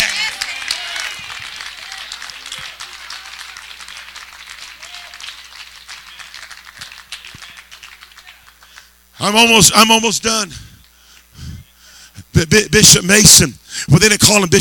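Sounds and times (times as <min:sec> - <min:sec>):
audience clapping: 0:00.0 - 0:09.0
speech: 0:09.2 - 0:10.7, 0:12.5 - 0:14.5.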